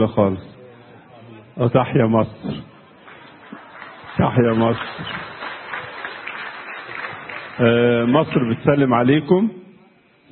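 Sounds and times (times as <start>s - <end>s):
speech: 0.0s - 0.5s, 1.6s - 2.7s, 4.2s - 5.3s, 7.6s - 9.6s
audience clapping at a public event in Egypt: 2.8s - 8.5s.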